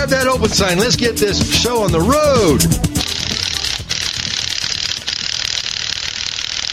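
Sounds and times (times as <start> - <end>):
speech: 0.1 - 2.9
lug wrench ratcheting in a garage: 3.0 - 6.7.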